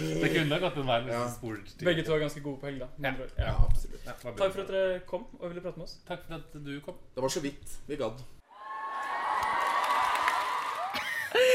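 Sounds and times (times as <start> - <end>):
speech: 0.0 - 8.4, 11.3 - 11.5
canned crowd cheer and applause: 8.5 - 11.5
laughter: 10.8 - 11.5.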